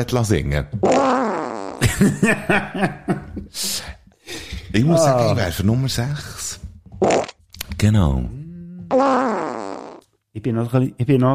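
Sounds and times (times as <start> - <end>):
speech: 0.0 - 1.2, 1.8 - 4.0, 4.7 - 9.4, 10.4 - 11.3
loud drawn-out fart: 0.8 - 1.8, 7.0 - 7.4, 8.8 - 10.1
laughter: 1.8 - 5.4.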